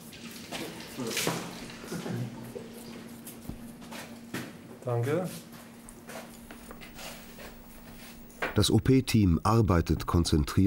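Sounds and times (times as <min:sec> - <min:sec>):
bucket being filled with cold tap water: 0:00.0 - 0:03.0
speech: 0:04.8 - 0:05.5, 0:08.6 - 0:10.6.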